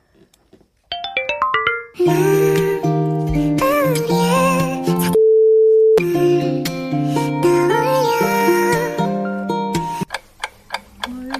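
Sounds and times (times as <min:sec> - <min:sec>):
K-pop song playing: 0:01.2 - 0:05.2, 0:06.0 - 0:10.0.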